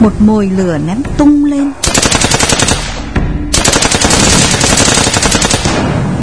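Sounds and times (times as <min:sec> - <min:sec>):
speech: 0:00.0 - 0:02.0
rapid gunfire from an attack on a village: 0:01.8 - 0:06.2.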